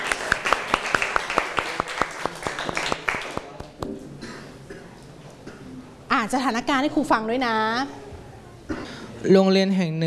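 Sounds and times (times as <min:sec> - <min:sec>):
classroom applause: 0:00.0 - 0:03.9
speech: 0:06.2 - 0:08.0, 0:09.2 - 0:10.0.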